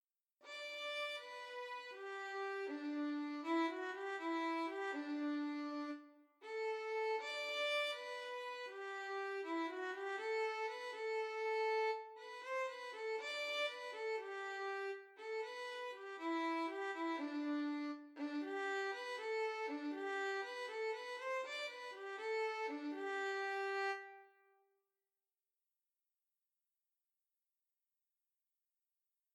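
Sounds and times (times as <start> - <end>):
easy violin arrangement in G major: 0.5 - 24.4.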